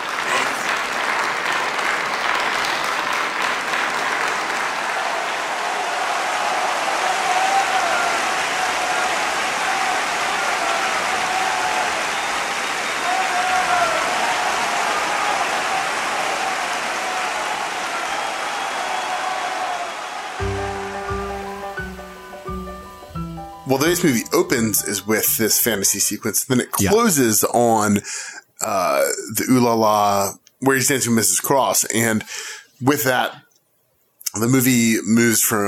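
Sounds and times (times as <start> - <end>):
uproarious crowd clapping and cheering in a gymnasium: 0.0 - 25.2
speech: 23.7 - 28.3, 29.3 - 33.4, 34.4 - 35.6.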